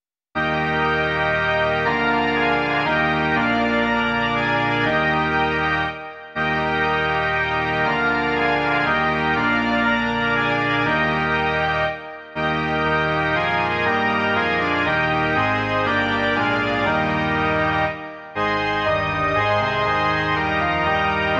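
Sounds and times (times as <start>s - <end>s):
organ: 0.4s - 21.3s.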